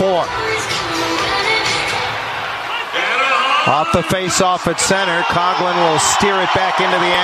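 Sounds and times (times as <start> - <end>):
speech: 0.1 - 1.0, 3.6 - 7.2
hockey arena crowd cheering after goal: 1.5 - 7.2.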